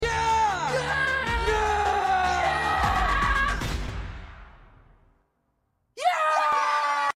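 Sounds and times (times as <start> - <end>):
people yelling yeah: 0.0 - 3.6, 6.0 - 7.1.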